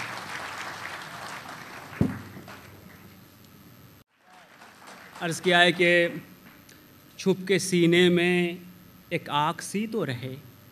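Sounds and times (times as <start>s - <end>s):
audience applause: 0.0s - 3.0s, 4.1s - 6.0s
speech: 5.2s - 6.3s, 7.2s - 10.5s.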